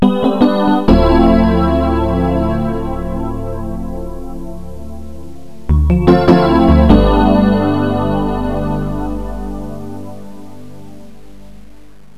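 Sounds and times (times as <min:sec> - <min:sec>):
piano pad: 0:00.0 - 0:11.9.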